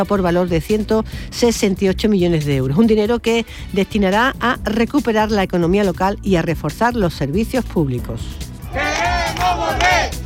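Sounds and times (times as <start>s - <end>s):
speech: 0.0s - 8.5s
street protest crowd in Ceuta chanting at night: 8.6s - 10.2s.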